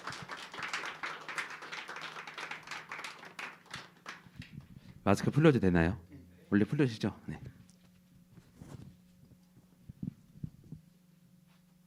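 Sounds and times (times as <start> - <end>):
audience applauding: 0.0 - 4.6
speech: 5.0 - 7.6.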